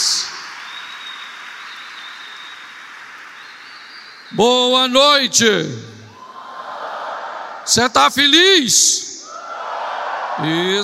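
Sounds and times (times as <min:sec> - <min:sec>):
church audience applauding: 0:00.0 - 0:04.3
speech: 0:04.3 - 0:05.9, 0:07.7 - 0:09.1, 0:10.4 - 0:10.8.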